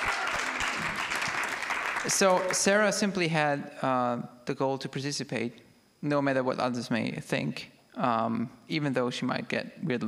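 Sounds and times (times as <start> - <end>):
audience applause: 0.0 - 2.7
speech: 2.0 - 10.0.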